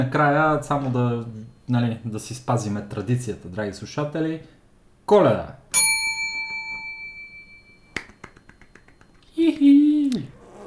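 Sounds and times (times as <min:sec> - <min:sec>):
speech: 0:00.0 - 0:05.8
small bell ringing: 0:05.7 - 0:07.9.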